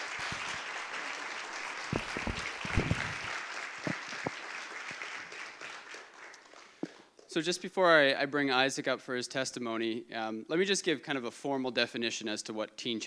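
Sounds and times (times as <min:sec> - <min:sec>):
audience applause: 0:00.0 - 0:06.8
speech: 0:07.4 - 0:13.0.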